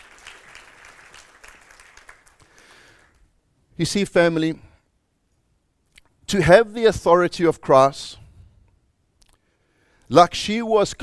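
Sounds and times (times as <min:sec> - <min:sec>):
audience clapping: 0:00.0 - 0:03.2
speech: 0:03.8 - 0:04.7, 0:06.3 - 0:08.2, 0:10.1 - 0:11.0.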